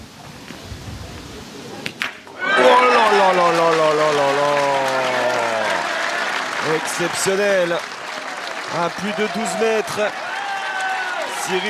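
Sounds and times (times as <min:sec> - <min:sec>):
applause from the stands of Saint-Yrieix-sur-Charente: 0:02.5 - 0:11.6
speech: 0:06.7 - 0:08.0, 0:08.7 - 0:10.2, 0:11.5 - 0:11.6.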